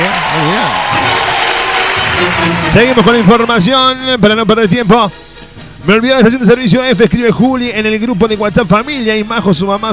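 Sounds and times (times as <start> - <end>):
applause: 0.0 - 3.7
speech: 2.4 - 5.2, 5.8 - 9.9.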